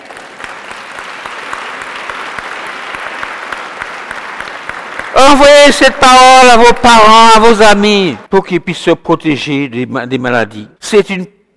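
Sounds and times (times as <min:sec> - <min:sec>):
audience applauding: 0:00.0 - 0:05.9
speech: 0:05.2 - 0:11.4.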